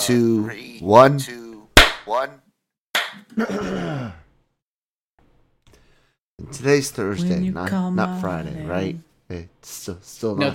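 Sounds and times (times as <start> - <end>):
speech: 0.0 - 1.4, 2.1 - 2.4, 3.4 - 4.2, 6.4 - 10.5
single hand clap for recording sync: 1.8 - 2.1, 3.0 - 3.2.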